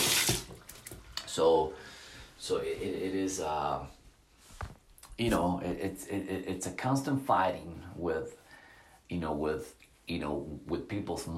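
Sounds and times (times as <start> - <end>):
tap water running while someone washes their hands: 0.0 - 1.3
speech: 1.4 - 1.8, 2.4 - 4.0, 5.2 - 8.4, 9.1 - 11.3.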